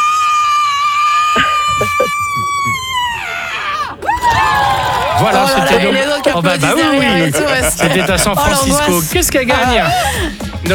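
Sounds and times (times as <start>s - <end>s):
woman's contest-winning loud scream: 0.0s - 5.8s
laughter: 0.7s - 10.7s
speech: 5.2s - 10.7s.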